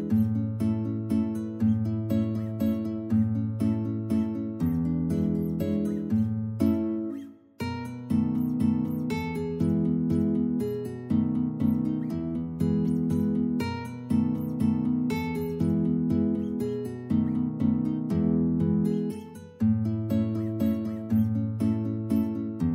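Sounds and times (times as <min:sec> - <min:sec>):
two guitars playing: 0:00.0 - 0:22.7.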